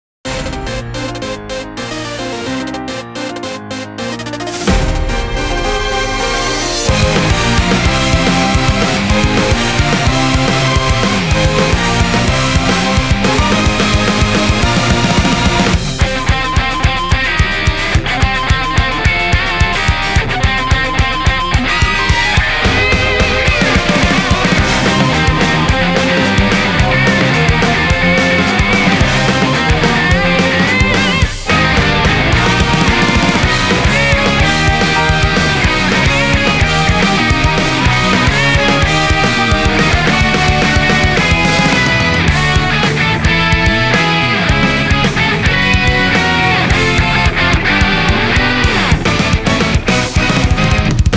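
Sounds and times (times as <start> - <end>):
instrumental music: 0.2 - 51.1.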